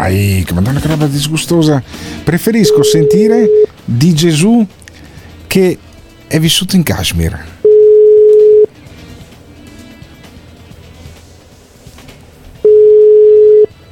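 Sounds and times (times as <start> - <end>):
speech: 0.0 - 4.8, 5.5 - 7.5
telephone ringback tone: 2.6 - 3.7, 7.6 - 8.7, 12.6 - 13.8.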